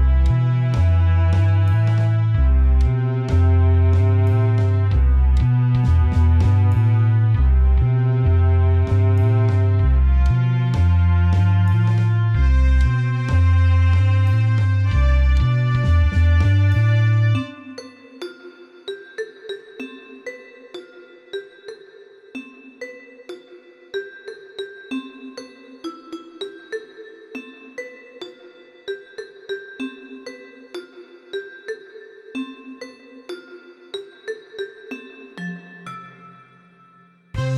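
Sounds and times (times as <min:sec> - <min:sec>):
horns: 0:00.0 - 0:17.8, 0:37.4 - 0:37.5
strings: 0:00.0 - 0:18.0, 0:37.4 - 0:37.5.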